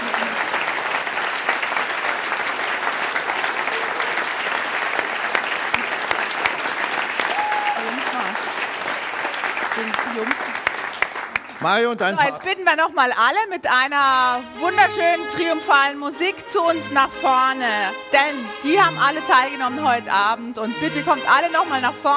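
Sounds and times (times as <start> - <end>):
audience applause: 0.0 - 12.6
speech: 11.6 - 22.1.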